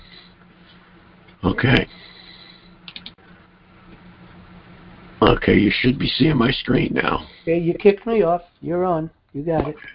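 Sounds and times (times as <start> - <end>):
speech: 1.4 - 2.1, 5.3 - 9.9
computer mouse clicks: 2.8 - 3.2.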